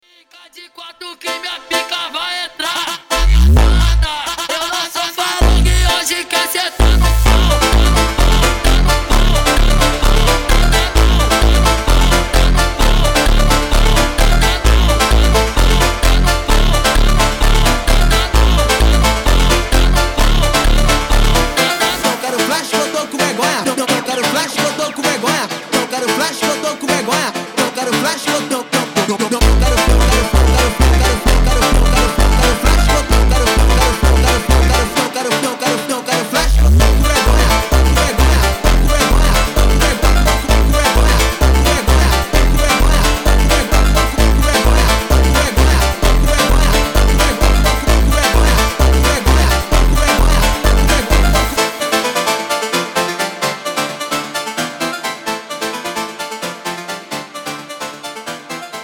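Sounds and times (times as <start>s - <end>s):
phonk montagem music: 0.2s - 58.8s.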